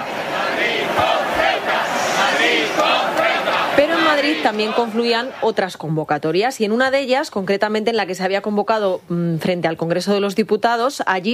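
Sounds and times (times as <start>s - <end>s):
large protest crowd chanting a slogan: 0.0s - 5.8s
speech: 4.1s - 11.3s.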